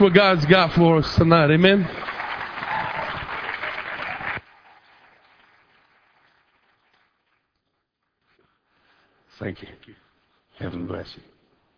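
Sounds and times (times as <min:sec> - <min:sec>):
speech: 0:00.0 - 0:02.0, 0:09.4 - 0:10.0, 0:10.6 - 0:11.3
audience applause welcoming a speaker: 0:00.0 - 0:07.5.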